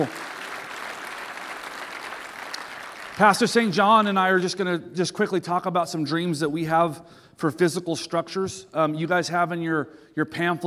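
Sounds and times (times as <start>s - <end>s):
speech: 0.0s - 0.2s, 3.2s - 10.6s
audience applauding: 0.0s - 4.1s.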